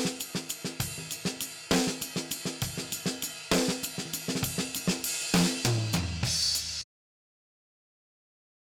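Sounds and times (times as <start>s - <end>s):
snare drum: 0.0s - 6.8s.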